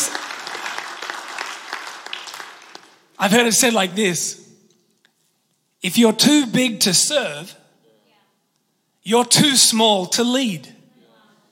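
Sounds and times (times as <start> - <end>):
audience clapping: 0.0 - 3.5
speech: 3.2 - 4.4, 5.8 - 7.6, 9.0 - 10.8.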